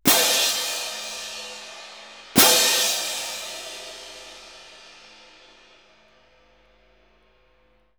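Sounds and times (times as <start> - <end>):
cymbals: 0.0 - 7.1.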